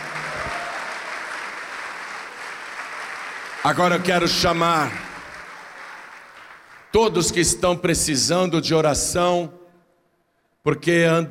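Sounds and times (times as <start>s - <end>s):
audience applauding: 0.0s - 7.2s
speech: 3.6s - 5.0s, 6.9s - 9.6s, 10.6s - 11.2s.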